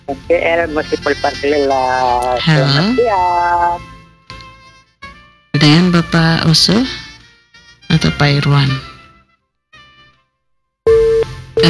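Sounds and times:
speech: 0.1s - 3.9s, 5.6s - 7.0s, 8.0s - 8.9s
telephone busy tone after a call disconnects: 2.2s - 3.8s, 10.9s - 11.6s.

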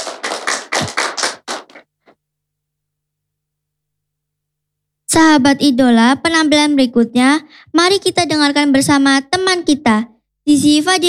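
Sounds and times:
group hand clapping at a school performance event: 0.0s - 2.1s
speech: 5.2s - 11.0s.

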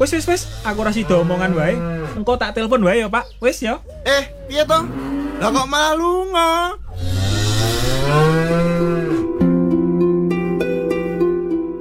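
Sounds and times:
speech: 0.0s - 7.2s
cattle mooing: 0.0s - 9.6s, 10.4s - 11.6s.

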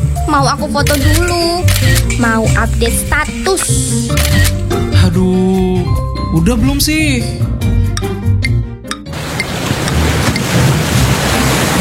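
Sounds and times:
speech: 0.3s - 7.8s
surf and sea waves at a beach: 9.1s - 11.7s.

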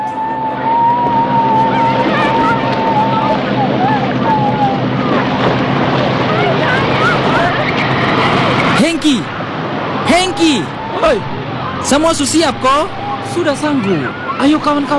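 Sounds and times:
boat engine droning across open water: 0.0s - 14.9s
faint voices calling out: 0.0s - 14.9s
water wash: 0.0s - 14.9s
wind at sea: 0.0s - 14.9s
speech: 11.9s - 14.9s.

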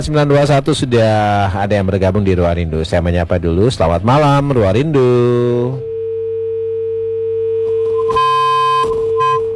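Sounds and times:
speech: 0.0s - 5.9s
telephone line disconnected tone: 5.2s - 9.5s
high beep: 7.7s - 9.5s.

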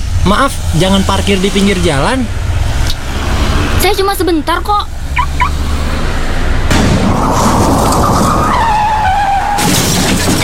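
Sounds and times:
car tires screeching in a skid: 0.0s - 10.4s
speech: 0.2s - 2.8s, 3.8s - 4.9s
car crashing impacts: 6.6s - 10.4s.

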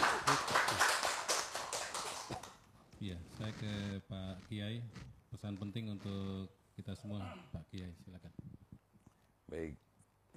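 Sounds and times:
audience clapping: 0.0s - 2.7s
speech: 3.0s - 8.4s, 9.5s - 10.3s.

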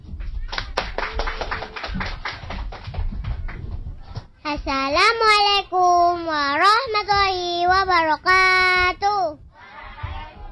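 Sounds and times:
audience clapping for a kindergarten group's recital: 0.3s - 4.3s
speech: 4.5s - 9.4s.

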